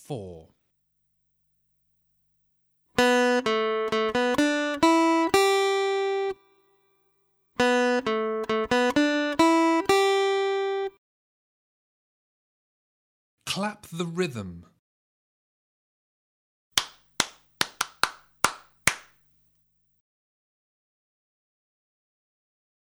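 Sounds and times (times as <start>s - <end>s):
acoustic guitar rhythm test: 3.0s - 6.4s, 7.6s - 10.9s, 16.8s - 19.1s.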